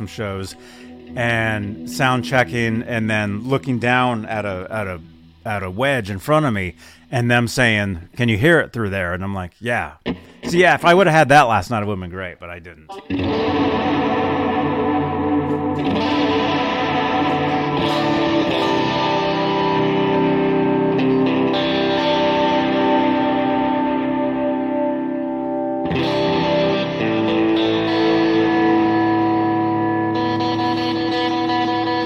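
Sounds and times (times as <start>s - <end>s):
electric guitar chords through chorus and distortion effects: 0.0s - 5.6s, 10.0s - 10.9s, 12.9s - 32.0s
speech: 0.0s - 13.9s.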